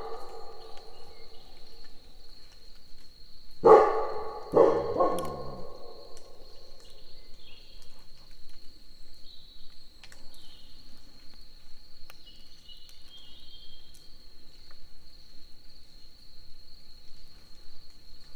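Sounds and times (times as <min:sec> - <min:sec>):
dog: 0:00.0 - 0:01.8, 0:03.6 - 0:06.6
crickets chirping: 0:00.0 - 0:07.5.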